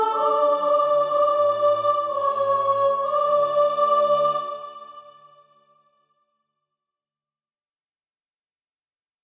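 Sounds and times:
soprano singing practice music: 0.0 - 5.3.

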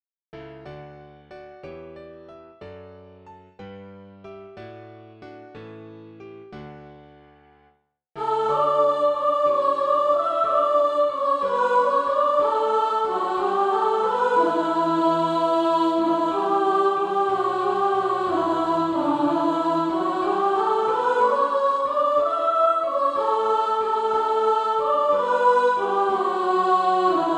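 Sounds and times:
soprano singing practice music: 8.2 - 27.3.

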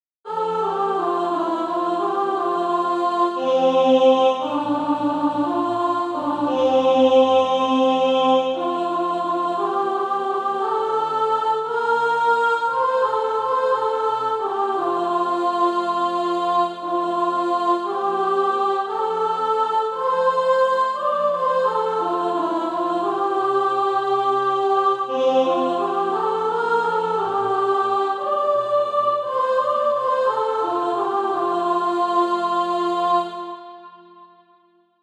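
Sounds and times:
soprano singing SATB practice music: 0.3 - 33.9.

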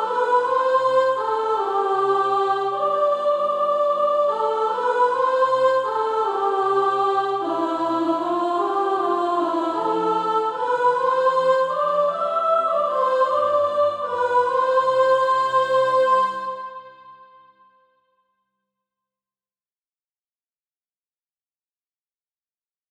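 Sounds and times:
soprano singing SATB practice music: 0.0 - 17.3.

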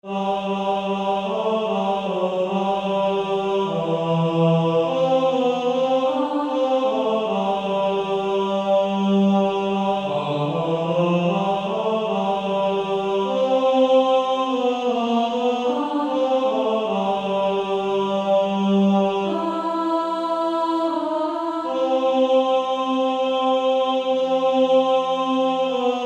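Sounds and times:
male choir singing, second tenor part: 0.0 - 26.0.

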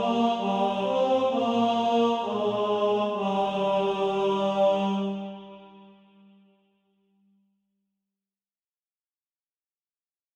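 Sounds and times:
tenor voice singing SATB practice music: 0.0 - 5.7.

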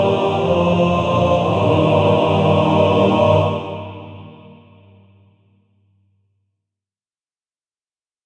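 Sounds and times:
male choir singing: 0.0 - 5.1.

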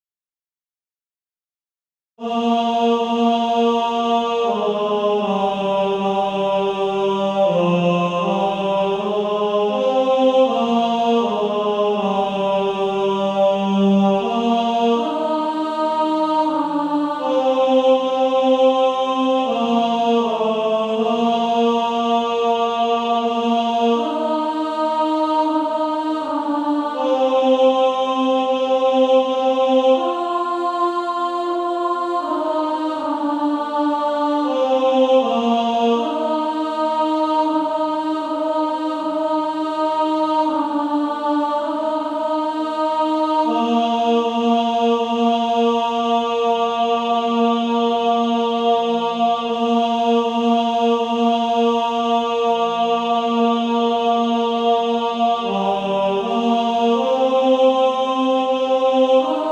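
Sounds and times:
male choir singing, tenor voice: 2.2 - 59.4.

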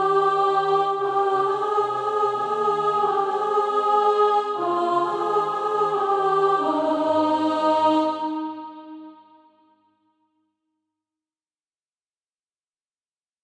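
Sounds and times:
alto voice singing SATB practice music: 0.0 - 9.5.

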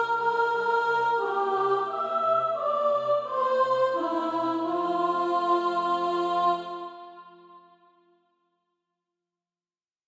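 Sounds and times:
soprano singing SATB practice music: 0.0 - 7.8.

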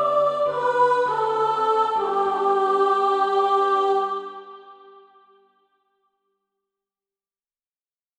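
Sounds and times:
soprano singing practice music: 0.0 - 5.3.

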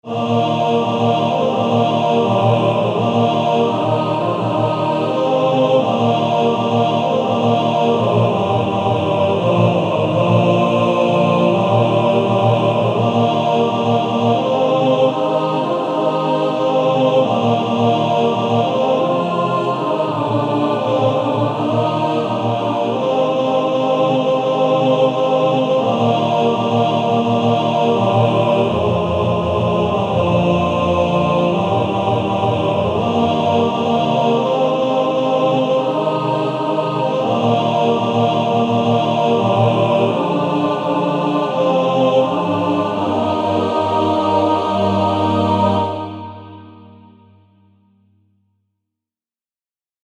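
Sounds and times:
male choir singing in four parts: 0.0 - 47.1.

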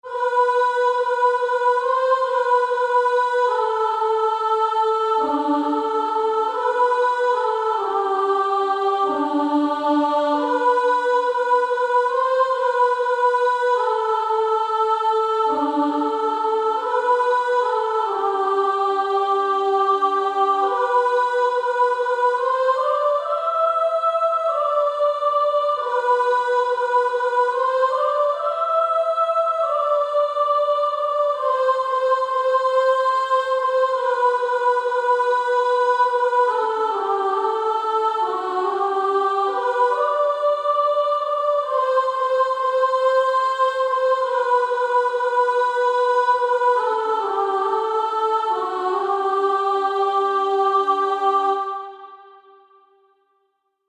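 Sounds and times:
female choir singing: 0.0 - 52.9.

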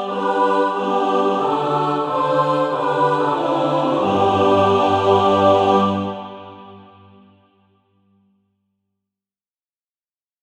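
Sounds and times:
mixed SATB choir practice music: 0.0 - 7.4.

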